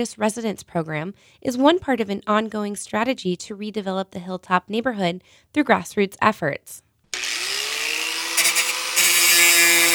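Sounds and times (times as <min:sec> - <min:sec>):
speech: 0:00.0 - 0:07.3
power tool grinding metal in an artist's workshop: 0:07.1 - 0:09.9.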